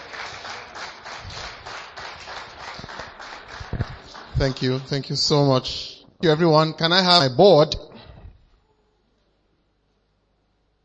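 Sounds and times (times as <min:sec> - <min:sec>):
audience clapping: 0:00.0 - 0:05.6
speech: 0:04.4 - 0:07.9.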